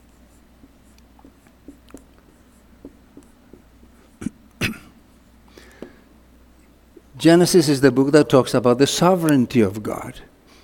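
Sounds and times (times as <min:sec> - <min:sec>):
preacher writing a word scratching: 0:00.0 - 0:04.2
speech: 0:07.2 - 0:10.3.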